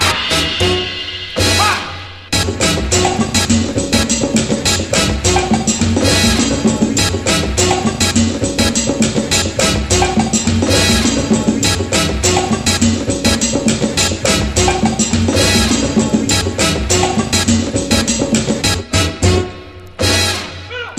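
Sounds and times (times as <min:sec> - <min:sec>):
sentimental mambo and funk mix: 0:00.0 - 0:20.9.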